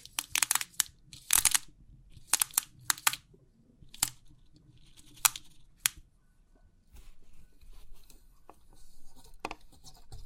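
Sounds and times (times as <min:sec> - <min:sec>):
3D pin art pins clicking and rattling: 0:00.0 - 0:03.2, 0:04.9 - 0:06.0
soft rustling hiss: 0:06.9 - 0:10.2.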